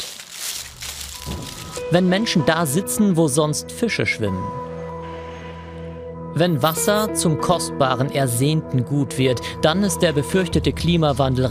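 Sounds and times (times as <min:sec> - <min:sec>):
footsteps crunching across a dry field: 0:00.0 - 0:01.8
speech: 0:01.9 - 0:04.7, 0:06.4 - 0:11.4.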